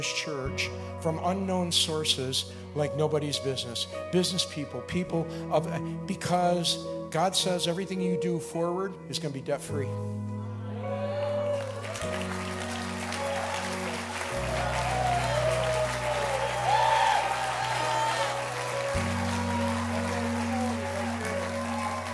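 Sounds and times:
speech: 0:00.0 - 0:10.2
audience clapping: 0:11.2 - 0:22.1.

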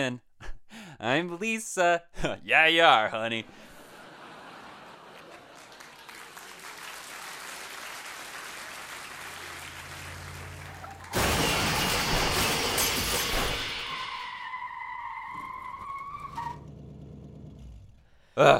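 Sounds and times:
speech: 0:00.0 - 0:00.2, 0:01.0 - 0:03.7, 0:18.4 - 0:18.5
laughter: 0:03.5 - 0:10.8
hot rod bursting through the wall of the set: 0:09.2 - 0:18.0.

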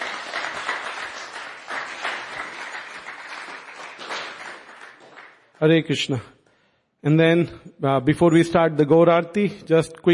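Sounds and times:
crowd applause: 0:00.0 - 0:05.5
speech: 0:05.6 - 0:06.4, 0:07.0 - 0:10.1.

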